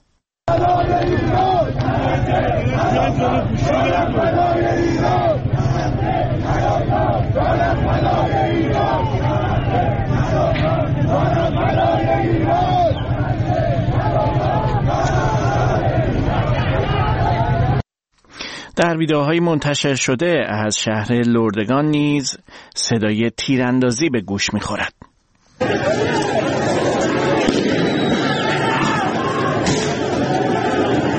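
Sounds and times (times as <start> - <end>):
street protesters chanting slogans: 0.5 - 17.8, 25.6 - 31.1
speech: 18.8 - 25.0.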